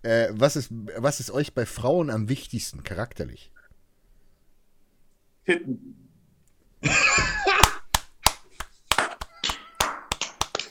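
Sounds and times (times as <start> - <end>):
speech: 0.0 - 3.5, 5.5 - 6.0, 6.8 - 7.4
laughter: 6.8 - 7.8
clapping: 7.6 - 10.6.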